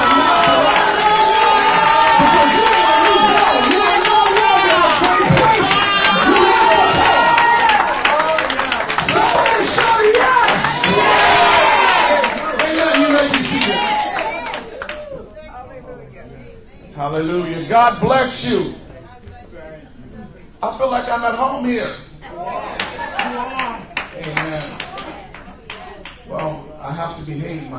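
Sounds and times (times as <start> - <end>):
audience applause in praise: 0.0 - 15.0, 22.8 - 25.8
crowd cheering in praise: 0.0 - 15.4, 22.3 - 25.9
speech: 17.8 - 18.8, 20.6 - 22.1, 24.2 - 24.9, 26.3 - 27.7.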